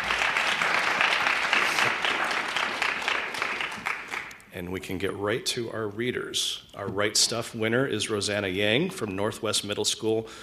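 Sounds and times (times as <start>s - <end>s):
round of applause: 0.0s - 4.4s
speech: 4.6s - 10.4s.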